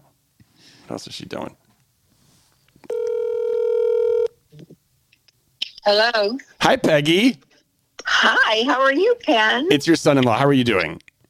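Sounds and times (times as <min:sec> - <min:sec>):
speech: 0:00.9 - 0:01.6, 0:05.8 - 0:07.5, 0:08.1 - 0:11.0
phone speed-dialing: 0:02.9 - 0:04.3.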